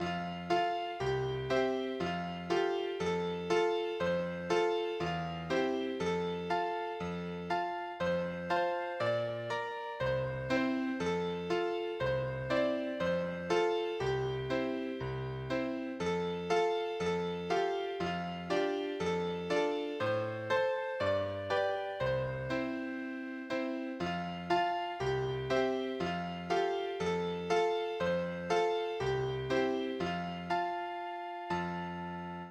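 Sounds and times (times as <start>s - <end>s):
ragtime MIDI music: 0.0s - 32.4s.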